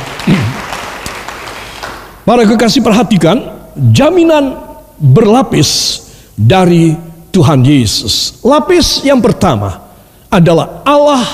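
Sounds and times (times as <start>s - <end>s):
audience applauding: 0.0s - 2.2s
speech: 2.3s - 11.3s.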